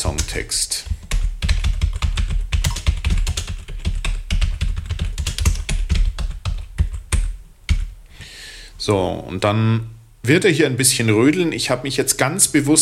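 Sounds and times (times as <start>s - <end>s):
fast typing on a computer keyboard: 0.1s - 7.9s
speech: 0.3s - 0.9s, 8.8s - 12.8s.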